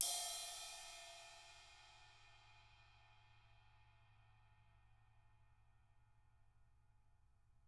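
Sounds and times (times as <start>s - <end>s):
18-inch crash cymbal hit on the tip: 0.0s - 2.4s.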